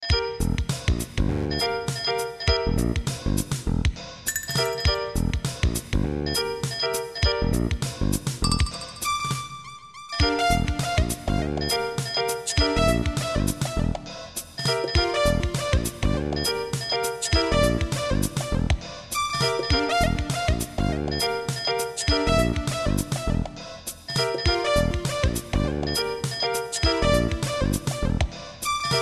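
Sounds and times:
trip hop music: 0.7 - 29.0.

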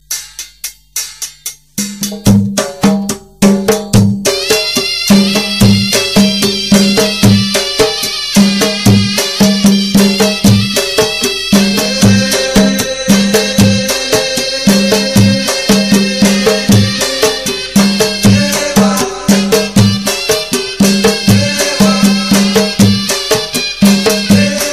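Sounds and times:
bass music: 0.0 - 24.7.

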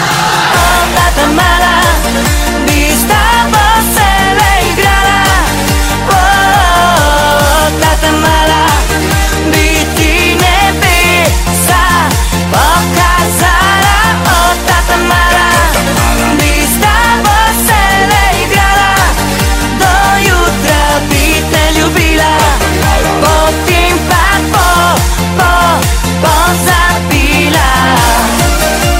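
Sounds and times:
vocals: 0.0 - 28.9.

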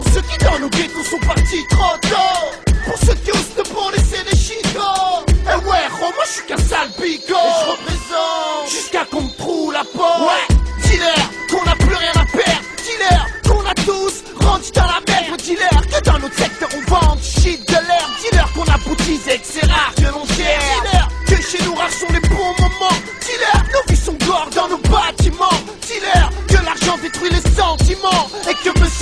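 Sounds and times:
French and Russian rap: 0.0 - 29.0.

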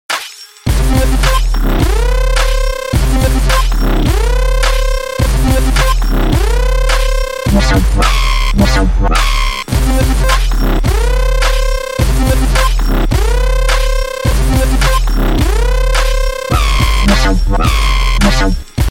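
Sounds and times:
dubstep music: 0.7 - 18.8.

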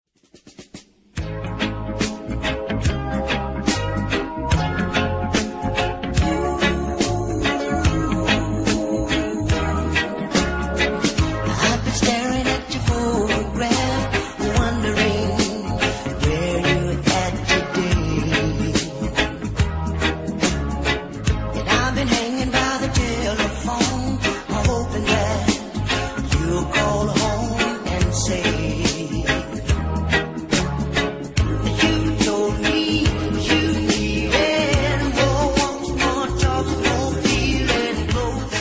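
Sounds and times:
reggae lovers rock ringtone: 1.2 - 38.5.

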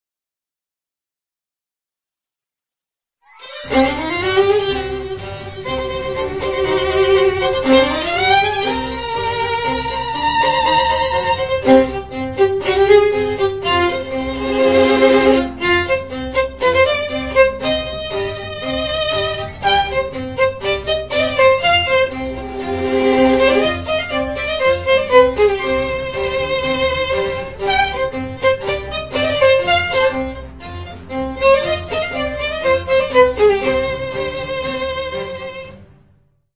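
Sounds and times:
violin: 3.3 - 36.0.

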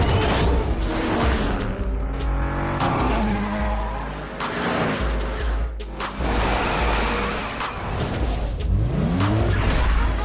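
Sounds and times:
drifting tone: 0.2 - 10.2.

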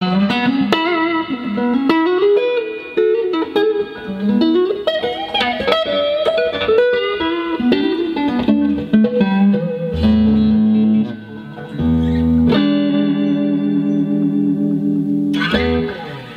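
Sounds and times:
1964 Fender Stratocaster electric guitar: 0.0 - 16.3.

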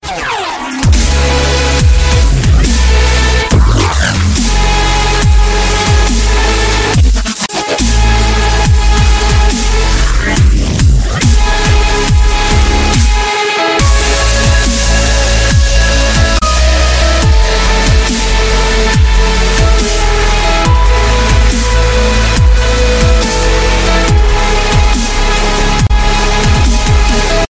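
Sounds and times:
chillstep music: 0.0 - 27.4.

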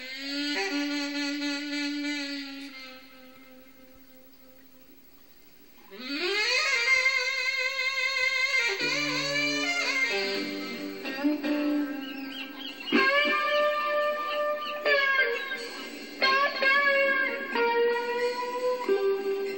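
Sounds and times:
saxophone: 0.0 - 5.0, 5.8 - 19.5.

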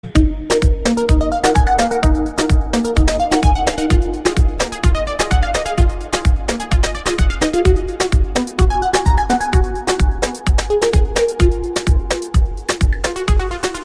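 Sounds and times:
ringtone: 0.2 - 13.8.

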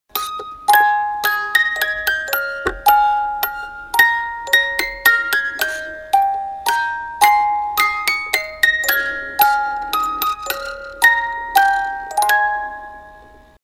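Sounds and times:
Christmas music box melody: 0.1 - 13.6.

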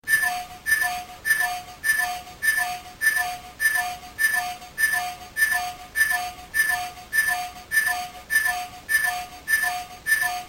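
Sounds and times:
timer: 0.1 - 10.4.

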